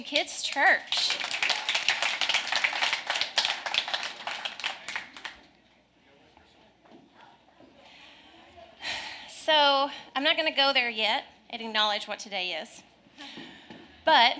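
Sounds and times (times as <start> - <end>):
speech: 0.0 - 1.2, 9.5 - 12.9, 14.1 - 14.3
audience applause: 0.5 - 5.4.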